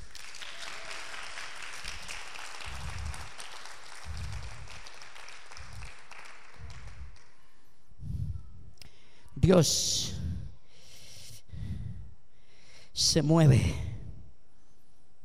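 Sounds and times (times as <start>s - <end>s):
audience applause: 0.0s - 7.3s
speech: 9.5s - 10.1s, 13.2s - 13.9s.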